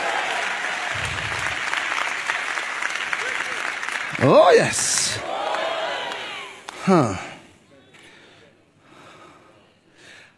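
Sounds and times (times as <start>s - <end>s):
audience clapping: 0.0s - 7.2s
speech: 4.2s - 5.3s, 6.8s - 7.3s.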